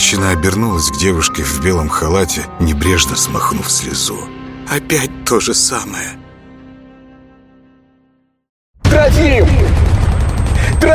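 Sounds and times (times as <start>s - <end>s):
speech: 0.1s - 6.3s, 9.0s - 9.9s
shells exploding: 8.8s - 10.9s.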